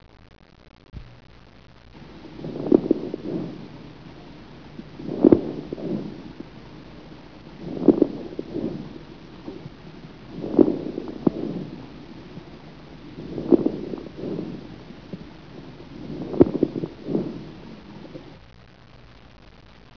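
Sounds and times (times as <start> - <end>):
soft crunching: 1.8 - 18.4.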